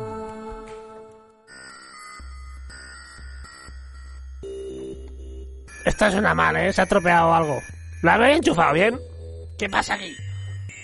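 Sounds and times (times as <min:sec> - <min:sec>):
small electronic organ being played: 0:03.4 - 0:10.8
speech: 0:05.8 - 0:10.2.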